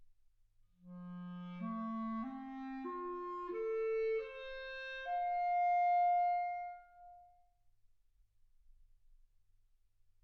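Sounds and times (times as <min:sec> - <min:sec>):
clarinet: 0:00.8 - 0:07.5.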